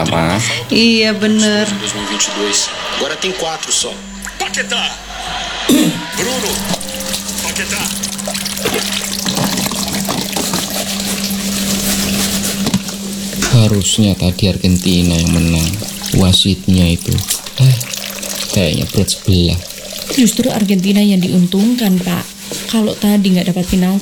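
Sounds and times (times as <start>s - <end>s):
speech: 0.0s - 6.9s, 7.6s - 8.1s, 8.7s - 9.0s, 13.5s - 17.9s, 18.6s - 24.0s
low steady hum: 0.0s - 24.0s
dishes clinking while washed: 5.7s - 20.6s
tap water running into a sink while dishes are washed: 6.1s - 24.0s.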